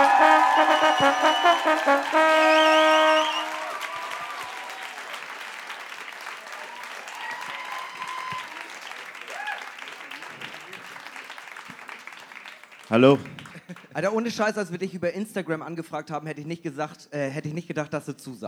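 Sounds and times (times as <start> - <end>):
people whooping: 0.0 - 12.2
audience applause: 0.0 - 14.0
speech: 13.0 - 13.3, 14.0 - 18.4
laughter: 13.2 - 14.1.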